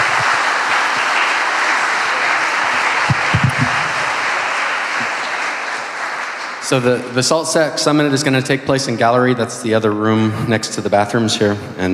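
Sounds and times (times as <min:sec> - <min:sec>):
audience applause after keynote: 0:00.0 - 0:07.5
speech: 0:06.7 - 0:11.9.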